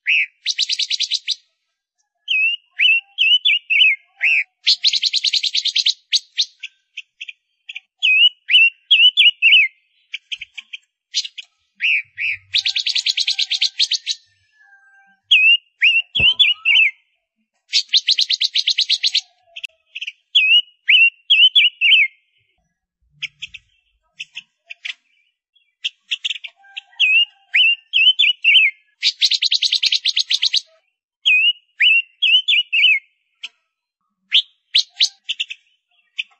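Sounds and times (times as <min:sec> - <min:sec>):
Gouldian finch singing: 0:00.0 - 0:01.5, 0:02.2 - 0:33.6, 0:34.2 - 0:36.3.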